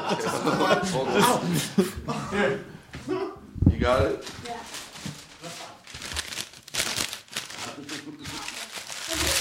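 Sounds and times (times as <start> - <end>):
laughter: 0.0 - 2.7
speech: 0.1 - 4.5
paper being folded and crinkled for origami: 4.2 - 9.4.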